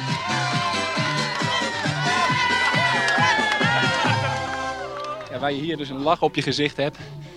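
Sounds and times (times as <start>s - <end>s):
rhythmic clapping: 0.0s - 5.6s
roadside crowd cheering and shouting: 0.0s - 5.7s
speech: 5.4s - 7.2s.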